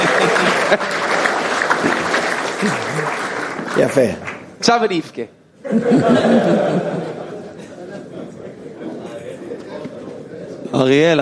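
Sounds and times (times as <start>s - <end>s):
laughter: 0.0s - 1.5s, 2.5s - 3.4s, 5.6s - 10.6s
audience clapping: 0.0s - 5.2s
speech: 3.8s - 7.2s, 10.7s - 11.1s.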